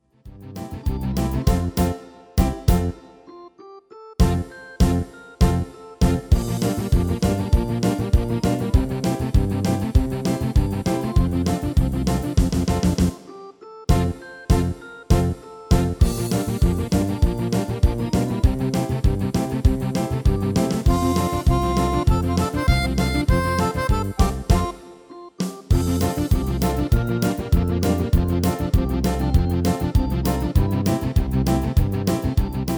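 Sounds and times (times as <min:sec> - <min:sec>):
MIDI music: 0:00.3 - 0:03.5, 0:04.2 - 0:32.7.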